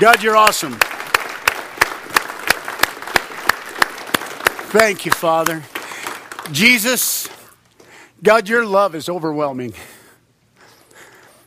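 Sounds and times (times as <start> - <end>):
speech: 0.0 - 0.9, 4.7 - 5.7, 6.4 - 7.4, 8.2 - 9.9
people clapping: 0.0 - 7.4.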